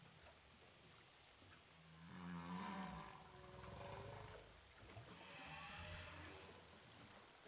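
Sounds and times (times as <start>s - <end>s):
humpback whale song recorded underwater with a hydrophone off Saint-Paul, Réunion: 2.0s - 6.7s.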